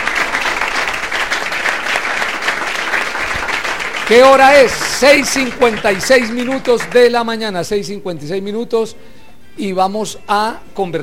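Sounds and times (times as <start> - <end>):
audience applause: 0.0 - 7.3
speech: 4.1 - 11.0.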